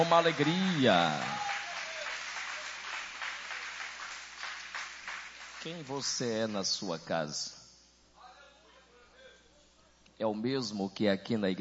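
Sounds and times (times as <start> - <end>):
speech: 0.0 - 1.5, 5.6 - 7.6, 10.2 - 11.5
audience applauding: 0.0 - 6.6.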